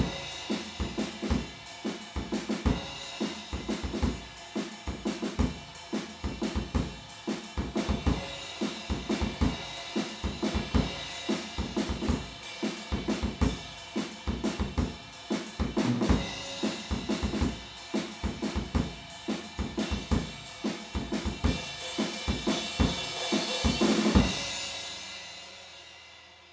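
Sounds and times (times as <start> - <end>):
drums recorded with PZM omni microphone: 0.0 - 26.5.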